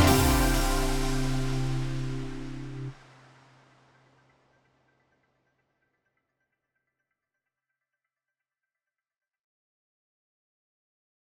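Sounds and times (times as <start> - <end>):
karaoke backing track: 0.0 - 2.9.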